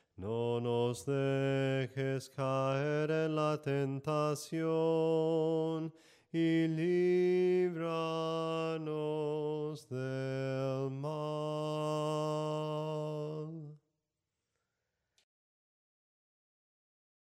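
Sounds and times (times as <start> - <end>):
soprano singing hymns: 0.2 - 13.8.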